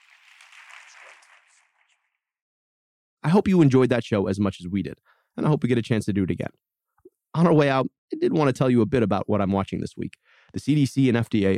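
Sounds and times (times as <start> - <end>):
audience round of applause: 0.0 - 1.8
speech: 3.2 - 6.7, 7.3 - 11.5.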